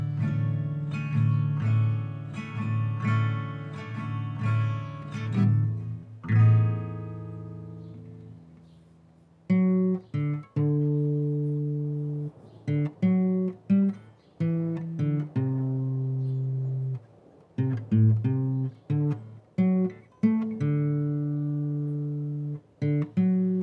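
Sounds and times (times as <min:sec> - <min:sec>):
guitar playing: 0:00.0 - 0:23.6.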